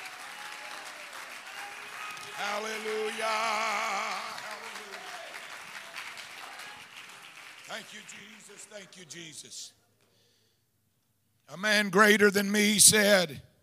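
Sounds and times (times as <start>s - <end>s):
audience clapping hands: 0.0s - 9.4s
speech: 2.4s - 3.7s, 7.7s - 9.8s, 11.5s - 13.5s.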